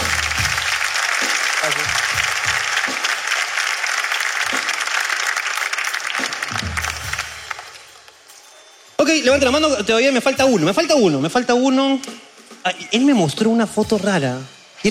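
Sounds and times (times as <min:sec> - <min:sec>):
audience applause: 0:00.0 - 0:08.1
speech: 0:01.6 - 0:02.2, 0:09.0 - 0:14.8.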